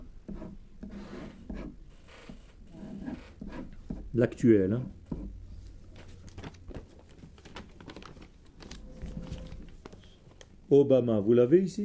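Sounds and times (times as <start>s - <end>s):
writing a name by hand: 0.0s - 4.1s
speech: 4.2s - 5.0s, 10.7s - 11.8s.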